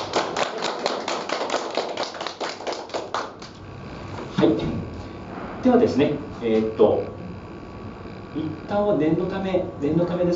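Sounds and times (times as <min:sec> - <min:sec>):
audience clapping: 0:00.0 - 0:03.6
speech: 0:04.4 - 0:04.8, 0:05.6 - 0:07.2, 0:08.4 - 0:10.3.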